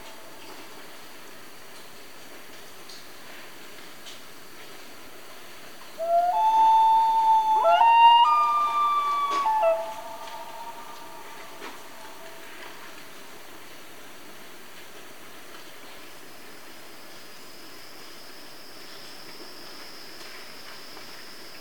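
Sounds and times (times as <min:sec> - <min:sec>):
common loon family group calling in Canada: 0:06.0 - 0:13.0.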